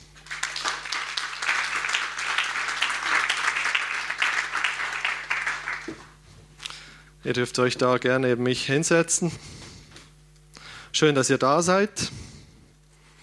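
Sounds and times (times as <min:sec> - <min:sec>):
audience applause: 0:00.2 - 0:06.2
speech: 0:07.2 - 0:09.6, 0:11.0 - 0:12.2.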